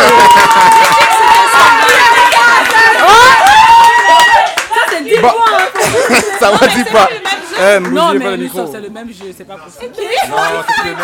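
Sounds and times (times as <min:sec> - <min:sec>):
laughter: 0:00.0 - 0:01.3, 0:05.7 - 0:07.7, 0:10.0 - 0:11.0
applause: 0:00.0 - 0:06.8, 0:07.6 - 0:08.2
speech: 0:07.7 - 0:11.0.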